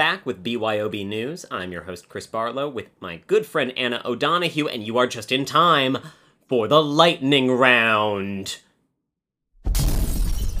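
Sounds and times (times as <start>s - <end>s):
speech: 0.1s - 8.6s
explosion sound effect: 9.6s - 10.5s.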